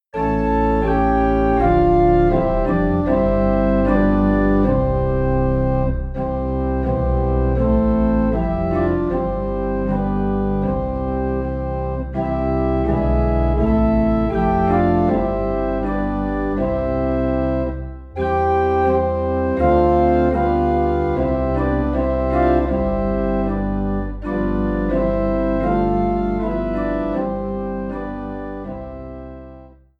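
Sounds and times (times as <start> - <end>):
low organ note in C: 0.2 - 29.7.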